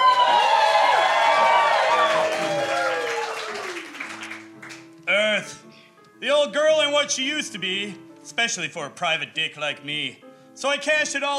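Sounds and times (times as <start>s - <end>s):
live audience cheering and whooping at a stage show recording: 0.0s - 4.0s
live audience applause: 0.0s - 4.9s
speech: 7.0s - 11.3s.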